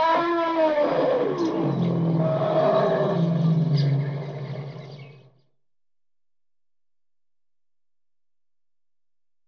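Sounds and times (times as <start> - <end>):
elephant trumpeting: 0.0 - 4.7
bird ambience: 1.3 - 5.5.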